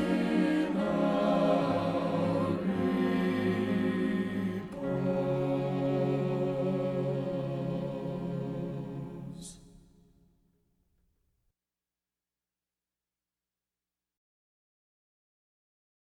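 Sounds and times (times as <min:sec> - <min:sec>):
music: 0:00.0 - 0:11.5.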